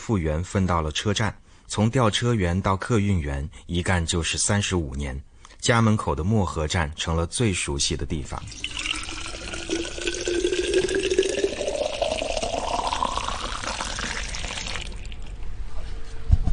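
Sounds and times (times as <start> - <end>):
speech: 0.1 - 9.0
hot water pouring into a cup: 8.4 - 15.4.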